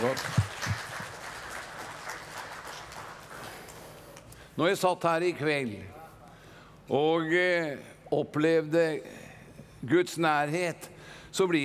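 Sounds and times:
audience applause: 0:00.0 - 0:04.0
speech: 0:04.6 - 0:06.0, 0:06.9 - 0:09.2, 0:09.8 - 0:11.6.

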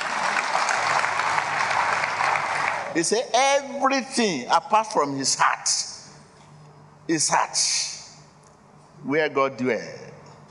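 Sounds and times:
audience clapping: 0:00.0 - 0:03.2
speech: 0:02.9 - 0:06.0, 0:07.1 - 0:07.9, 0:09.0 - 0:10.1.

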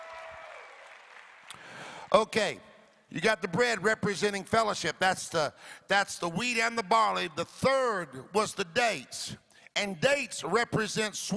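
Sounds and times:
audience clapping hands: 0:00.0 - 0:02.2
speech: 0:01.5 - 0:11.3.

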